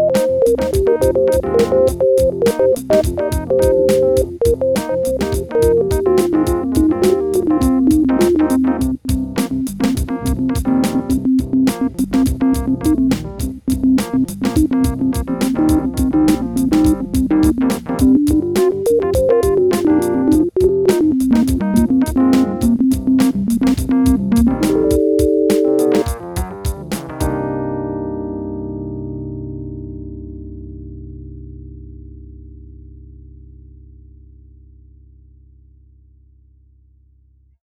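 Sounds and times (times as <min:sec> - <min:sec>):
MIDI blues music: 0:00.0 - 0:27.4.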